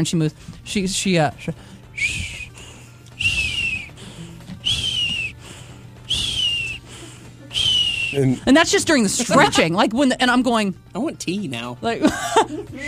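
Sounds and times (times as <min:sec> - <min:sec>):
speech: 0:00.0 - 0:02.3, 0:08.1 - 0:12.8
voice imitating an old woman's wheezy breathing: 0:01.5 - 0:08.5, 0:12.7 - 0:12.8.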